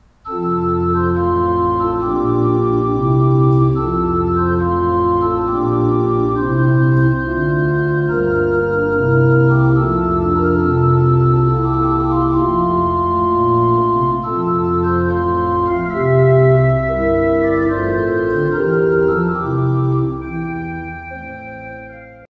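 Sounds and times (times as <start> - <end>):
baroque orchestral piece: 0.1 - 22.2.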